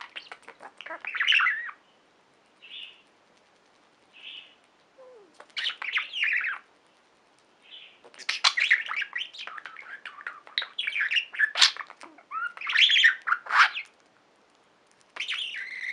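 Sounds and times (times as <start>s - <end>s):
budgerigar chirps and squawks: 0.0s - 1.8s, 8.1s - 13.9s, 15.2s - 15.9s
hiss: 0.0s - 15.9s.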